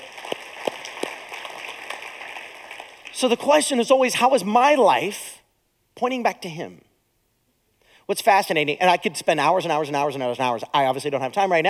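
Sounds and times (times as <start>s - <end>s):
audience clapping: 0.0s - 3.6s
speech: 3.2s - 5.4s, 6.0s - 6.9s, 8.1s - 11.6s.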